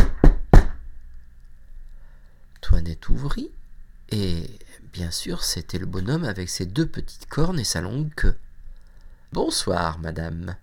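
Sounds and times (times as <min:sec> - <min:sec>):
knocking on a door: 0:00.0 - 0:00.8
speech: 0:02.8 - 0:08.4, 0:09.3 - 0:10.6.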